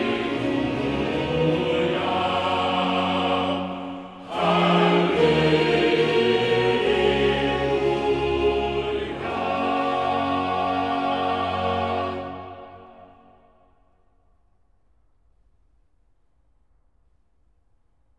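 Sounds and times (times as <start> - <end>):
chorale: 0.0 - 14.1.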